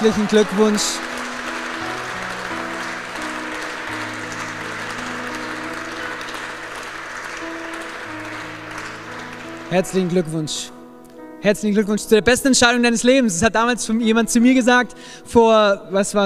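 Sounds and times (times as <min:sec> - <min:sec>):
speech: 0:00.0 - 0:01.2, 0:09.7 - 0:10.8, 0:11.4 - 0:16.2
applause: 0:00.0 - 0:10.4.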